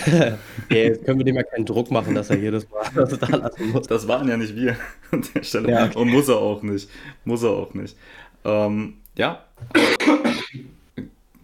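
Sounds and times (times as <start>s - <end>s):
laughter: 0.0s - 6.3s
speech: 0.0s - 11.2s
person coughing: 9.7s - 10.7s.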